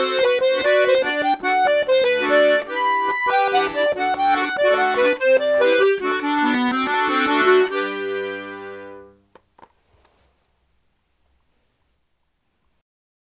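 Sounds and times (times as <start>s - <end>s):
waltz music: 0.0s - 9.2s.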